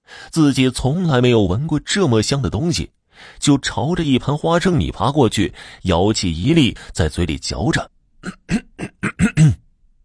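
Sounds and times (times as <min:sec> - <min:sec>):
speech: 0:00.3 - 0:09.6
hedgehog coughing: 0:08.2 - 0:09.7.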